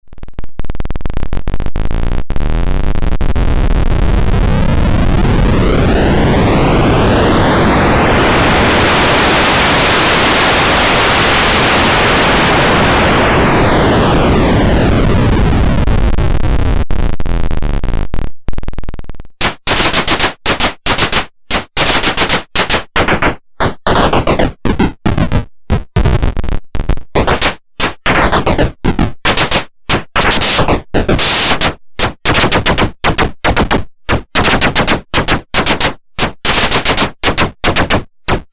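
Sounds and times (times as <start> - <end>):
digital noise: 0.2 - 38.5.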